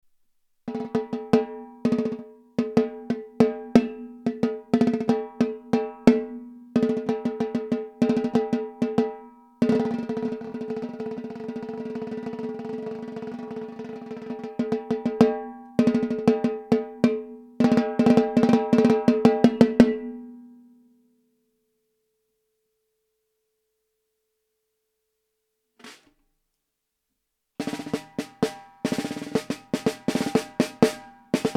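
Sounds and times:
Tama LMB1465 drum: 0.7s - 19.8s, 25.8s - 26.2s, 27.6s - 31.5s.

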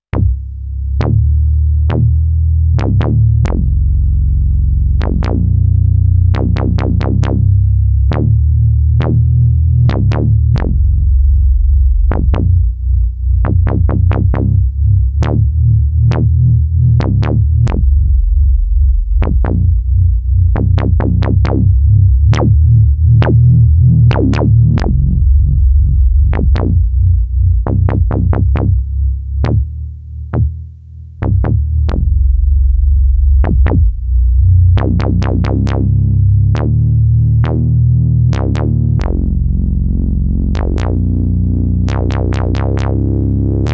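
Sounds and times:
deep bass: 0.0s - 43.7s.

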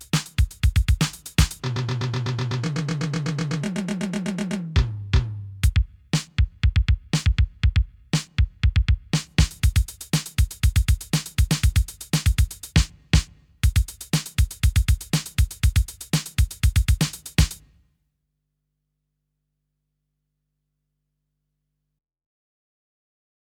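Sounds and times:
cop show beat on TR6S drum machine: 0.0s - 17.7s.

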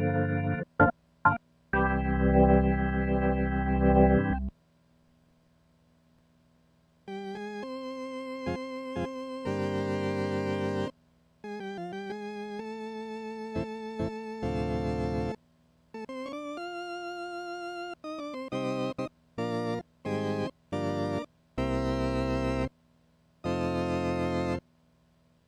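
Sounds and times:
organ: 0.0s - 4.5s, 7.1s - 10.9s, 11.5s - 15.4s, 16.0s - 22.7s, 23.4s - 24.6s.

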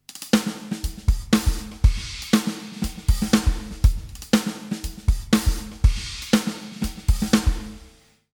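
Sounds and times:
studio drums in a hall: 0.0s - 8.1s.

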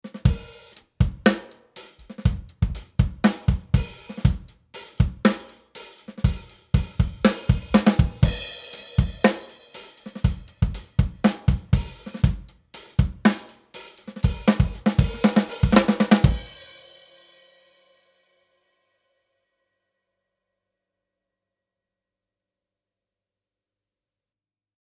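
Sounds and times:
drums through Summit Audio EQP 200B equalizer: 0.0s - 18.0s.

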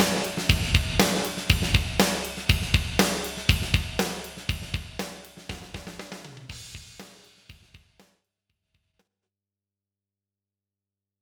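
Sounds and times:
drums with Lexicon Model200 inverse room reverb: 0.0s - 8.1s.

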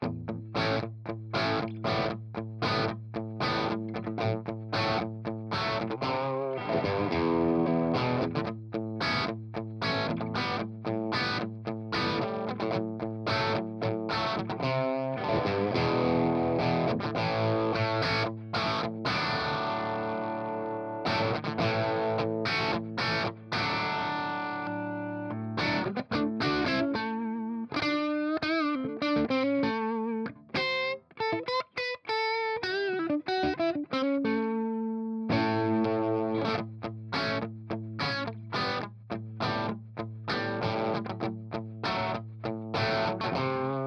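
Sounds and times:
rhythm guitar through a Fryette amplifier: 0.0s - 43.8s.

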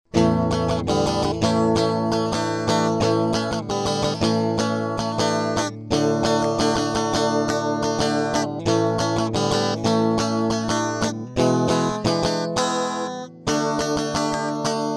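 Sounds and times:
guitar through MiniFuse 2 Hi-Z input: 0.0s - 14.9s.

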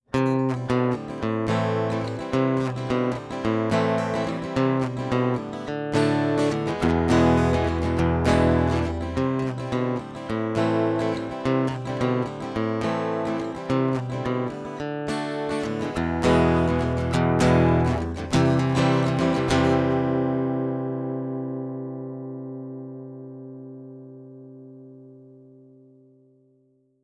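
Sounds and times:
Epiphone EJ-200 SCE VS guitar flatpicking through Fishman pickup: 0.0s - 27.0s.

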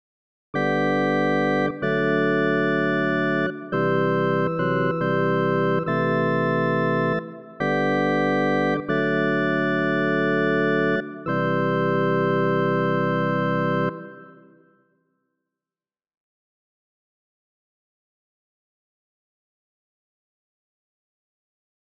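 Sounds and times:
organ in a hall: 0.6s - 14.7s.

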